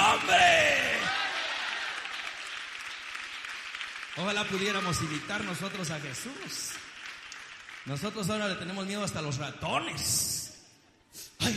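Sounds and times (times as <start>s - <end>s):
applause: 0.0s - 9.0s
speech: 4.2s - 6.9s, 7.8s - 10.4s.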